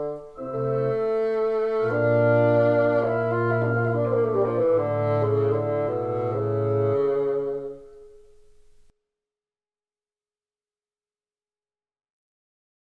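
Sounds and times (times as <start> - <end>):
sonata in F: 0.0 - 8.9.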